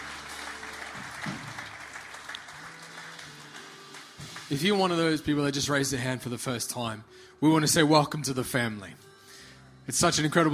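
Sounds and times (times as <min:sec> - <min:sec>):
church congregation applauding a pastor: 0:00.0 - 0:05.0
speech: 0:04.5 - 0:09.0, 0:09.9 - 0:10.5.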